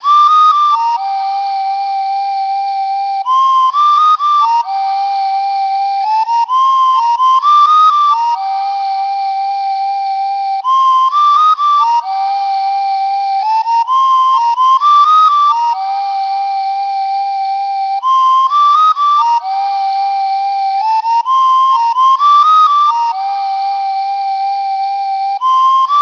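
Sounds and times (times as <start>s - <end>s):
flute: 0.0s - 26.0s.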